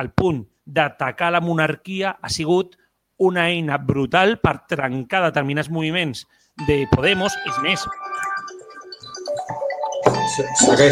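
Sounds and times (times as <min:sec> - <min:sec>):
speech: 0:00.0 - 0:08.3, 0:10.3 - 0:10.8
telephone melodic ringtone: 0:06.6 - 0:10.8.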